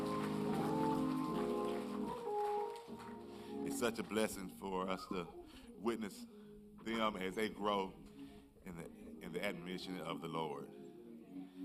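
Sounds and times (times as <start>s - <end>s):
audience applause: 0.0s - 4.4s
humming musical tones: 0.0s - 5.4s
speech: 3.8s - 10.8s.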